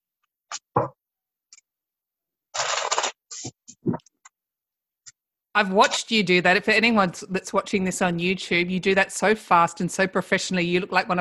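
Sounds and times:
deck of cards being shuffled: 2.6s - 3.5s
speech: 5.6s - 11.2s.

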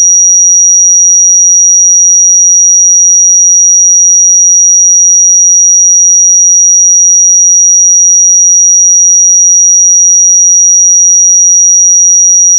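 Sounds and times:
5759 Hz pure sine tone: 0.0s - 12.5s.

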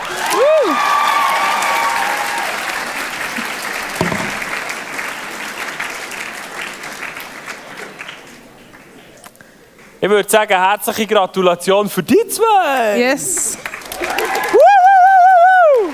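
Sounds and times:
crowd whistles and cheers: 0.0s - 2.8s, 13.8s - 15.9s
audience applause: 0.0s - 9.2s, 12.7s - 15.9s
speech: 10.0s - 14.6s.

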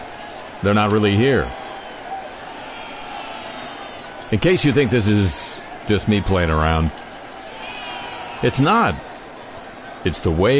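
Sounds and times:
simulated ballpark crowd noise: 0.0s - 10.5s
speech: 0.6s - 1.6s, 4.3s - 7.0s, 8.4s - 9.1s, 10.0s - 10.5s.

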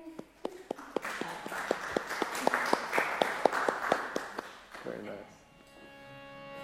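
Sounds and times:
group clapping: 0.0s - 5.2s.

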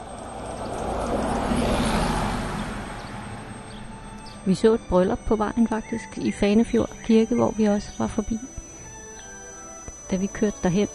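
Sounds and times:
bus driving past: 0.0s - 7.3s
speech: 4.4s - 8.7s, 10.1s - 10.9s.

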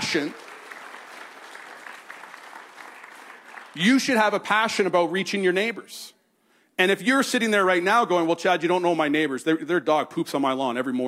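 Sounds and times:
audience applause: 0.0s - 4.2s
speech: 0.1s - 0.4s, 3.8s - 6.2s, 6.8s - 11.0s.

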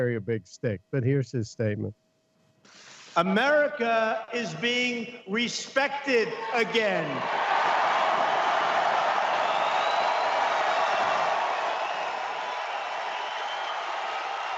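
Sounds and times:
speech: 0.0s - 2.0s, 2.6s - 7.5s
large crowd cheering and roaring: 6.2s - 14.5s.

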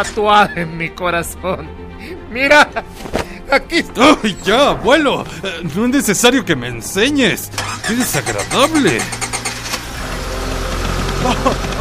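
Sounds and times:
speech: 0.0s - 9.3s, 11.2s - 11.7s
laughter: 5.1s - 6.1s, 7.7s - 9.2s, 11.1s - 11.7s
boat motor starting and running: 7.5s - 11.7s.

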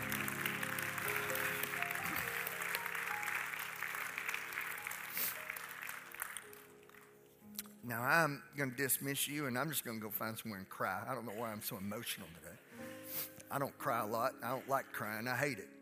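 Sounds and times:
audience clapping hands: 0.0s - 7.4s
speech: 7.9s - 12.7s, 13.5s - 15.7s.

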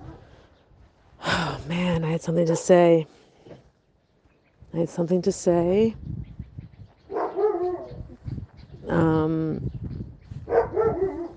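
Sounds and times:
speech: 1.7s - 3.2s, 4.7s - 6.2s, 8.9s - 9.7s
dog barking while chasing: 7.1s - 8.0s, 10.5s - 11.3s.

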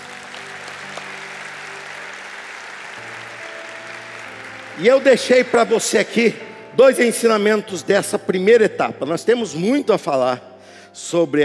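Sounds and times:
steady dense applause from a crowd: 0.0s - 5.9s
speech: 4.8s - 11.4s.

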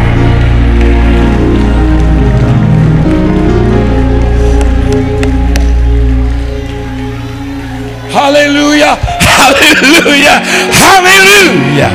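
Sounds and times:
audience clapping: 0.0s - 8.1s
audience shouting praise: 0.0s - 11.9s
speech: 8.2s - 11.9s.

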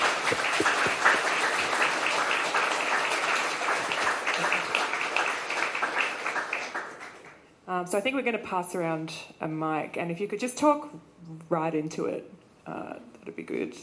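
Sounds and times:
audience applause: 0.0s - 7.4s
speech: 0.3s - 0.7s, 7.8s - 13.8s.

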